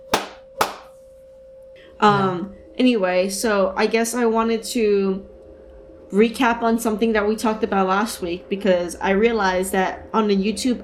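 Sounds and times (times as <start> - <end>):
hand claps: 0.1 - 0.9
speech: 2.0 - 5.3, 6.1 - 10.8.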